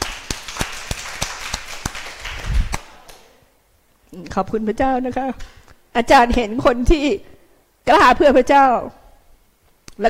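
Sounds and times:
audience clapping hands: 0.0 - 3.4
speech: 4.1 - 9.0.

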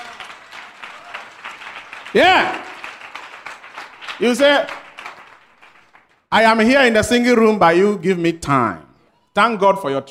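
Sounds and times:
rhythmic audience clapping: 0.0 - 6.5
speech: 2.1 - 2.6, 4.2 - 4.8, 6.3 - 10.0.

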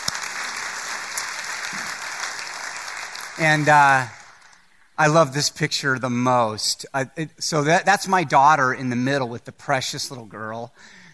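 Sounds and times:
audience applause: 0.0 - 4.6
speech: 3.4 - 4.2, 5.0 - 11.0.

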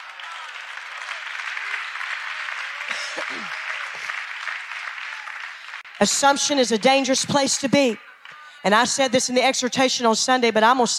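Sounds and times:
audience applause: 0.0 - 6.5
speech: 3.2 - 4.1, 6.0 - 10.9.

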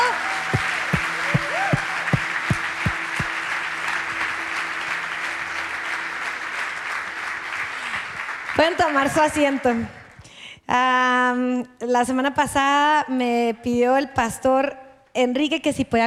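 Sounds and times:
sustained tone: 0.0 - 8.2
crowd clapping: 0.0 - 10.4
speech: 8.6 - 10.0, 10.7 - 16.0.

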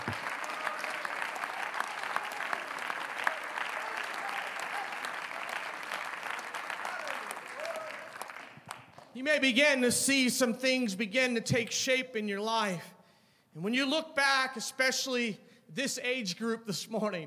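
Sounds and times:
audience clapping hands: 0.0 - 9.2
speech: 9.2 - 12.9, 13.6 - 17.2.

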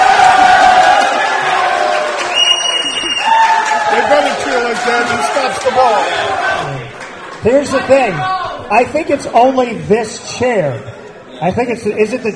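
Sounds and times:
shouts and whoops: 0.0 - 6.7
crowd cheering and applauding for a named guest: 0.0 - 8.5
high whistle: 2.3 - 3.5
speech: 7.4 - 12.3.

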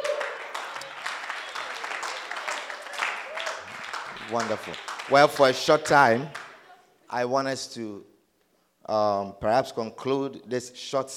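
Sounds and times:
audience clapping: 0.0 - 6.6
speech: 4.3 - 6.4, 7.1 - 8.1, 8.9 - 11.1.

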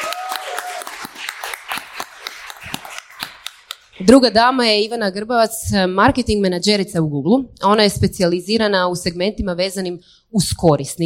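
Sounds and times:
audience applause at a speaking event: 0.0 - 3.9
speech: 4.0 - 11.0.

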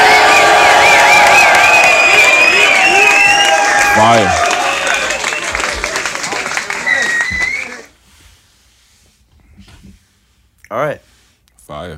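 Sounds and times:
high whoops and shouts: 0.0 - 5.6, 6.7 - 7.9
crowd cheering: 0.0 - 7.9.

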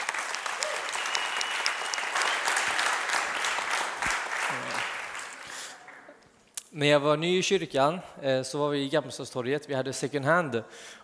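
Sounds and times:
audience applause: 0.0 - 6.1
speech: 6.8 - 11.0.

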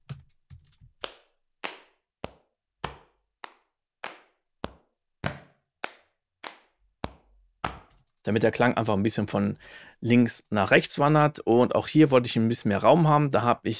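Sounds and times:
body percussion processed with Shaperbox plugin: 1.0 - 8.0
speech: 8.2 - 13.7.

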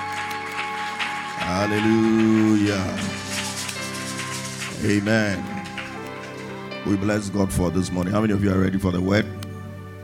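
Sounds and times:
audience clapping: 0.0 - 7.3
speech: 1.4 - 3.3, 4.8 - 5.6, 6.8 - 9.4.

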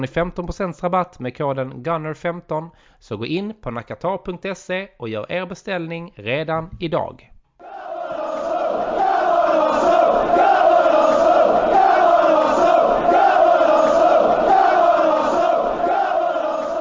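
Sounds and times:
speech: 0.0 - 7.3
large audience roaring and applauding: 7.6 - 16.7.

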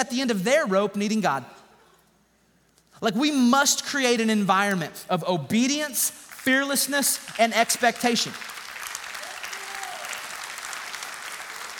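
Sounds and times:
speech: 0.0 - 1.6, 3.0 - 8.5
audience clapping: 6.2 - 11.7.

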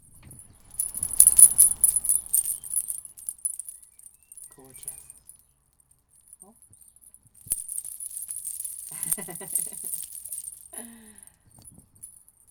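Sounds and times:
metal word spell bracelets jangling as slipped onto a wrist: 0.6 - 12.4
speech: 4.6 - 5.1, 9.2 - 10.0, 10.8 - 11.3.

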